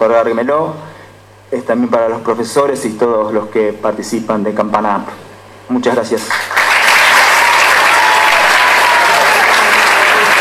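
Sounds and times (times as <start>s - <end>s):
speech: 0.0s - 0.9s, 1.5s - 6.6s
audience applause: 6.3s - 10.3s.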